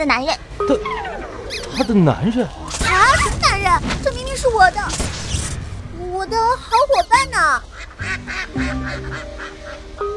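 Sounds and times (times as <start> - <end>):
speech: 0.0 - 5.3, 6.1 - 10.1
duck quacking: 1.5 - 4.0, 7.6 - 9.9.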